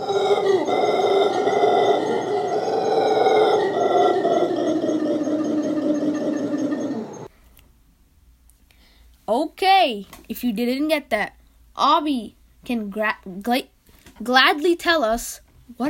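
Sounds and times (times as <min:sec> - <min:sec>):
howler monkey howls: 0:00.0 - 0:07.3
speech: 0:09.8 - 0:15.8.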